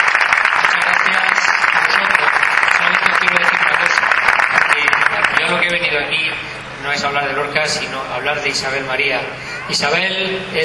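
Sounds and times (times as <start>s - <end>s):
audience applause: 0.0s - 6.0s
speech: 5.7s - 10.6s.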